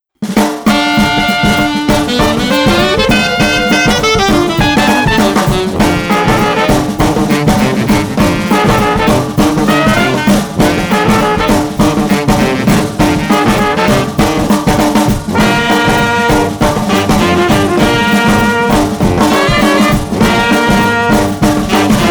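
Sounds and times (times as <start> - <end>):
New Orleans brass band playing: 0.3 - 22.1.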